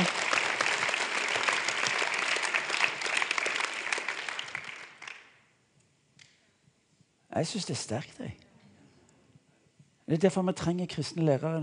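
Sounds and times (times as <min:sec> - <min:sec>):
audience clapping: 0:00.0 - 0:05.4
speech: 0:07.4 - 0:08.4, 0:10.1 - 0:11.6.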